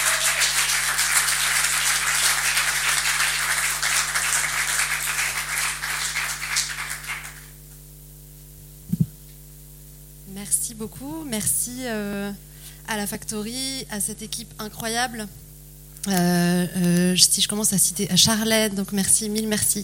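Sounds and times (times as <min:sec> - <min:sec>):
audience applause: 0:00.0 - 0:07.6
low electrical hum: 0:00.0 - 0:19.8
speech: 0:10.8 - 0:15.4, 0:16.0 - 0:19.8.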